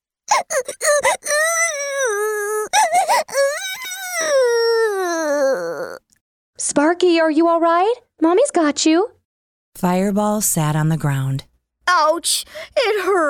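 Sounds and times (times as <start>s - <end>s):
voice imitating a young dragon wailing in terror: 0.3s - 6.0s
speech: 6.8s - 9.2s, 9.8s - 13.2s.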